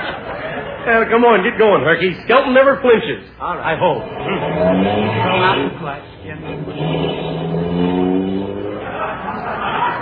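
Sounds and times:
laughter: 0.0 - 1.1, 8.2 - 10.0
speech: 0.8 - 7.1
car engine sound effect for a radio comedy, car driving fast: 4.0 - 9.9.

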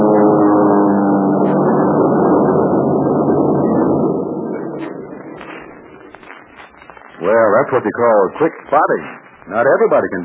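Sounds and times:
Mitsubishi heavy bombing monoplanes flying overhead: 0.0 - 6.1
speech: 7.6 - 10.2.

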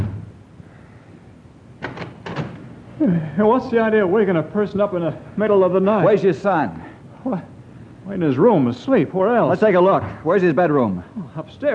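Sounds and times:
door opening: 1.8 - 2.7
speech: 3.0 - 7.5, 8.1 - 11.7.

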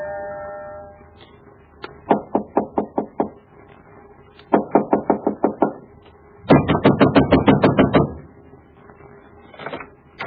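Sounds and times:
pounding on a door: 2.1 - 3.4, 4.5 - 5.8, 6.5 - 8.2.

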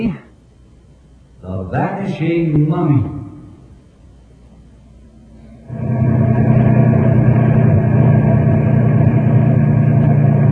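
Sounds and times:
speech: 0.0 - 0.3, 1.4 - 3.2
heavy truck engines of a caravan rumbling: 5.2 - 10.5.

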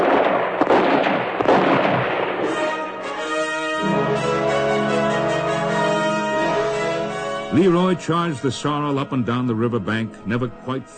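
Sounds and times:
gunshots: 0.0 - 3.3
droning tonal music: 2.6 - 10.9
speech: 7.6 - 10.9.

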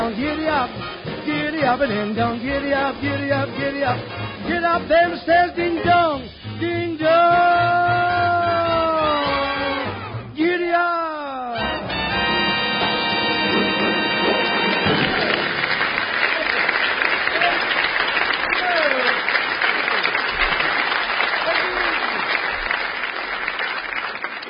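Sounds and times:
sung rhythmic passage in a comic musical performance: 0.0 - 11.8
speech: 1.7 - 7.8
audience applause in a comic musical performance: 11.8 - 24.4.

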